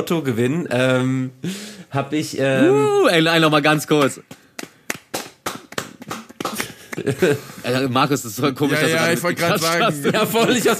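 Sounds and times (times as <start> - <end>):
speech: 0.0 - 4.4, 7.0 - 10.7
hand clapping: 4.0 - 7.3
laughter: 6.5 - 7.9, 8.6 - 10.7.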